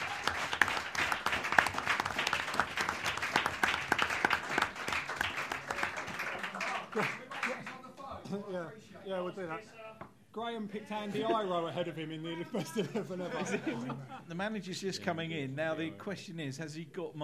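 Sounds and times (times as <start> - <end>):
round of applause: 0.0 - 8.0
laughter: 6.3 - 7.6, 12.4 - 14.4
speech: 7.0 - 7.2, 8.3 - 9.8, 10.4 - 17.2.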